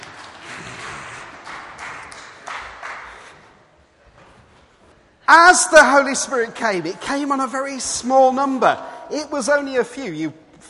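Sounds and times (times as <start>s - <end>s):
audience applause: 0.0s - 3.5s
speech: 5.3s - 10.6s.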